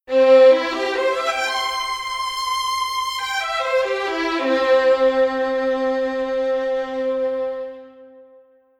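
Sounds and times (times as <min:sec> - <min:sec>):
violin: 0:00.1 - 0:08.6.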